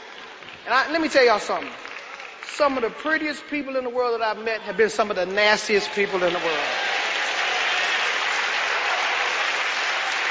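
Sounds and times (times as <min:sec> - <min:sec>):
audience applause: 0:00.0 - 0:00.7, 0:01.5 - 0:02.5, 0:05.9 - 0:10.2
speech: 0:00.7 - 0:01.8, 0:02.5 - 0:06.8.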